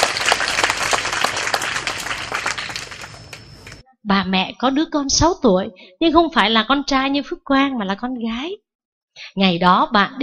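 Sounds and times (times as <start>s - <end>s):
audience round of applause: 0.0s - 3.8s
speech: 4.1s - 8.6s, 9.2s - 10.2s.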